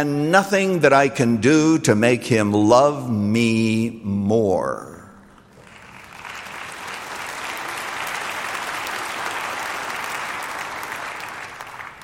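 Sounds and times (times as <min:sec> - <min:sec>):
speech: 0:00.0 - 0:04.9
audience clapping: 0:05.3 - 0:12.0.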